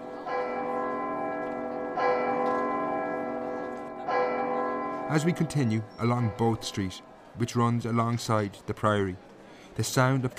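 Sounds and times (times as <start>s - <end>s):
large priory church bell booming from belfry: 0.0s - 7.3s
speech: 5.1s - 10.3s.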